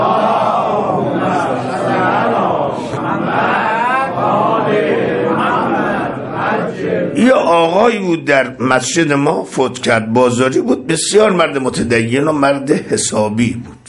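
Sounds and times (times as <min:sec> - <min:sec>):
congregation reciting salawat at a religious talk: 0:00.0 - 0:07.9
speech: 0:07.1 - 0:13.8.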